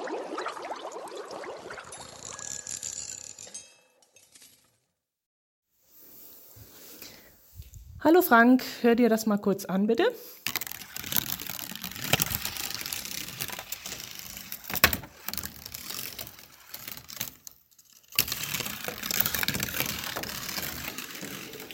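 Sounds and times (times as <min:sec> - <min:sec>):
speech: 0:08.0 - 0:10.4
marbles rolling on a cardboard marble run: 0:10.5 - 0:17.4, 0:18.2 - 0:21.7.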